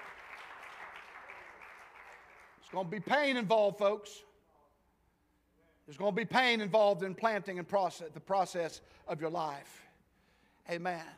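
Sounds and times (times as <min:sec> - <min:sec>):
audience clapping: 0:00.0 - 0:03.0
speech: 0:02.7 - 0:04.3, 0:05.9 - 0:09.9, 0:10.6 - 0:11.1.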